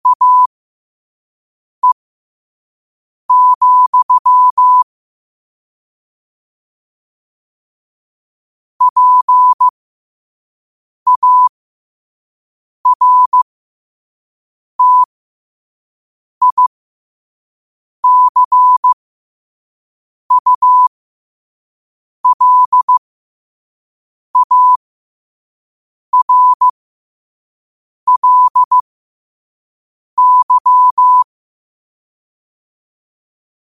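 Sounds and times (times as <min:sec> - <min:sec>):
morse code at 5 wpm: 0:00.0 - 0:00.5, 0:03.3 - 0:04.8, 0:08.8 - 0:09.7, 0:11.1 - 0:11.5, 0:12.9 - 0:13.4, 0:14.8 - 0:15.1, 0:16.4 - 0:16.7, 0:18.0 - 0:19.0, 0:20.3 - 0:20.9, 0:22.2 - 0:23.0, 0:24.4 - 0:24.8, 0:26.1 - 0:26.7, 0:28.1 - 0:28.8, 0:30.2 - 0:31.3.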